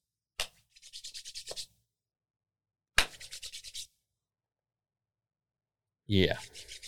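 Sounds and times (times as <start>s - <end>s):
sharp hand clap: 0.4s - 0.6s, 3.0s - 3.2s
brisk rhythmic palm-rubbing: 0.4s - 1.7s, 3.0s - 3.9s, 6.4s - 6.8s
speech: 6.1s - 6.6s.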